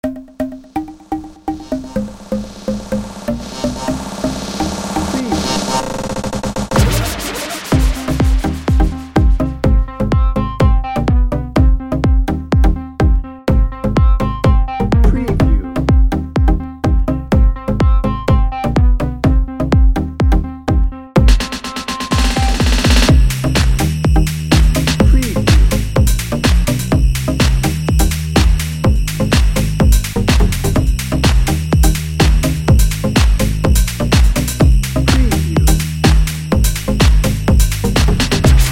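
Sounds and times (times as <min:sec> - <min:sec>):
dance party edm music bed: 0:00.5 - 0:38.7.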